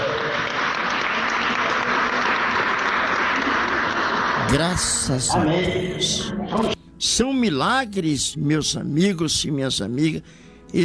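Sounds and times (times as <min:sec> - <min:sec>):
church congregation applauding a claimed healing: 0:00.0 - 0:06.8
speech: 0:04.5 - 0:10.8.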